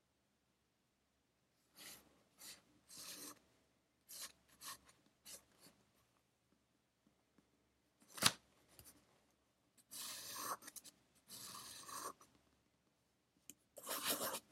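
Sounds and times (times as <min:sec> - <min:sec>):
pencil scratching on paper while studying: 0:01.8 - 0:03.4, 0:04.1 - 0:05.8, 0:09.8 - 0:12.3, 0:13.8 - 0:14.5.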